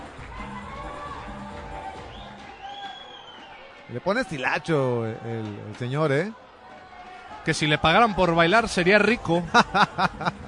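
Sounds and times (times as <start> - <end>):
stadium crowd applauding: 0.0 - 10.4
speech: 3.9 - 6.4, 7.4 - 10.4
laughter: 9.1 - 10.4.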